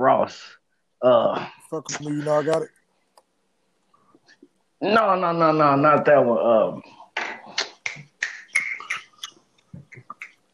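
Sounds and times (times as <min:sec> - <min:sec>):
speech: 0:00.2 - 0:02.8, 0:04.8 - 0:07.0
finger snaps: 0:07.2 - 0:10.5.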